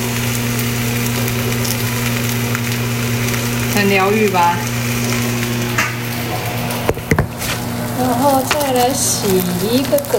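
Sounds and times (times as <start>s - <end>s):
zucchini sizzling in a pan: 0.0s - 10.1s
speech: 3.8s - 4.7s, 8.0s - 10.1s.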